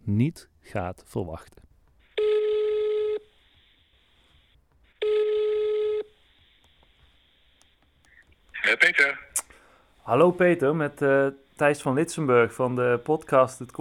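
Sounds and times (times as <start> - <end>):
speech: 0.1 - 1.6, 8.7 - 9.3, 10.1 - 13.8
ringback tones on an outgoing phone call: 2.2 - 3.3, 5.0 - 6.2.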